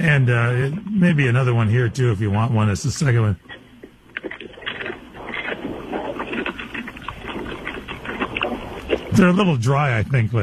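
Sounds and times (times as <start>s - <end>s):
speech: 0.0s - 3.6s, 9.2s - 10.4s
dog chewing crunchy treat: 3.4s - 9.3s.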